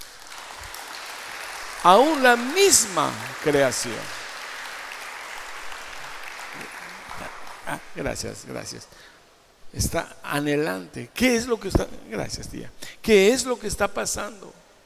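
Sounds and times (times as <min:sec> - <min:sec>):
audience applauding: 0:00.0 - 0:08.2
speech: 0:01.8 - 0:04.2, 0:07.7 - 0:09.1, 0:09.7 - 0:14.6.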